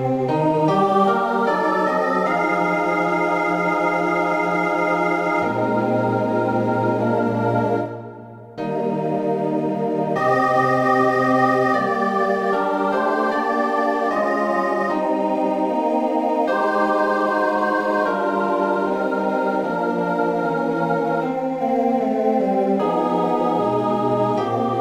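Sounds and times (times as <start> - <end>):
soprano choir: 0.0 - 24.7.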